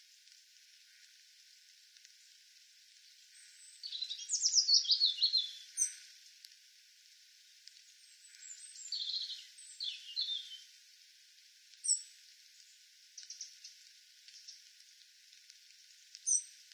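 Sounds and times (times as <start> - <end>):
European robin singing: 3.4 - 6.1, 8.0 - 10.7, 16.2 - 16.5.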